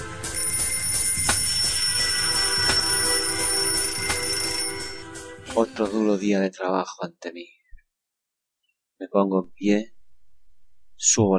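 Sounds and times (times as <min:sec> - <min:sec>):
alarm clock ringing with metallic jangle: 0:00.3 - 0:05.1
speech: 0:05.6 - 0:07.6, 0:09.0 - 0:09.9, 0:11.0 - 0:11.3.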